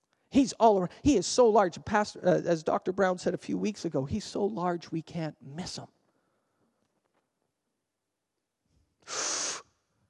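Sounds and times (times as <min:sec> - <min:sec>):
speech: 0:00.3 - 0:06.0
preacher drawing a deep breath in during a sermon: 0:09.0 - 0:09.8.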